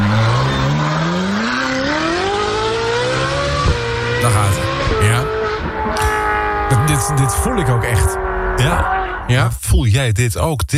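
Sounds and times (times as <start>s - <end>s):
petrol Ferrari engine revving: 0.0s - 9.7s
speech: 7.1s - 10.7s.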